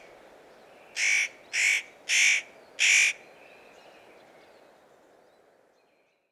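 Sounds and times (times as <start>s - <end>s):
Tannenhaeher at Immenstaedter Horn: 1.0s - 3.2s.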